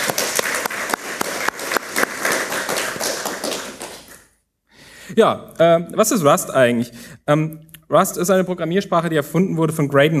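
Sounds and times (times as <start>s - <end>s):
audience applause: 0.0s - 4.2s
speech: 5.2s - 10.1s.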